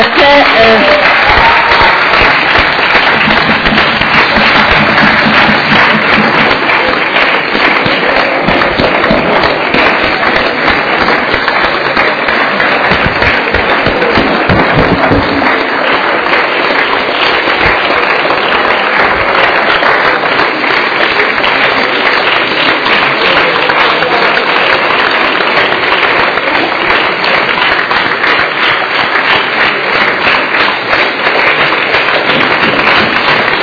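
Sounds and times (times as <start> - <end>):
applause: 0.0 - 33.6.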